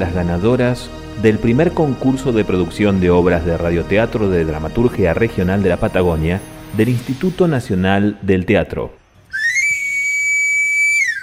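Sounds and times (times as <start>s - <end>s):
speech: 0.0s - 9.0s
knife sharpener's pan pipe whistle: 9.2s - 11.2s.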